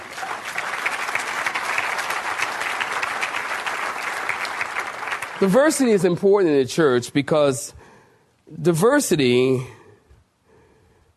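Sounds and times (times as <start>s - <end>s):
crowd applause: 0.0s - 5.9s
speech: 5.4s - 7.8s, 8.5s - 9.8s.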